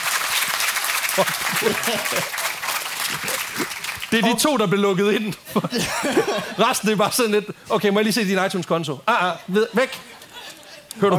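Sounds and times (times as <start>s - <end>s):
audience applause: 0.0s - 4.2s
speech: 1.2s - 2.4s, 3.1s - 10.2s, 11.0s - 11.1s
laughter: 1.2s - 3.8s, 5.4s - 7.0s, 9.5s - 11.1s.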